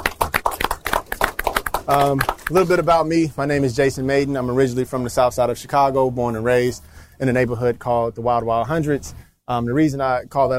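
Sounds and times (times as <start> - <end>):
audience applause: 0.0 - 2.7
speech: 1.9 - 10.5.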